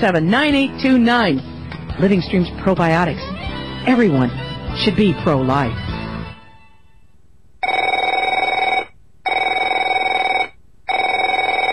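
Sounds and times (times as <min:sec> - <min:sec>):
speech: 0:00.0 - 0:05.8
telephone ringing: 0:07.6 - 0:11.7.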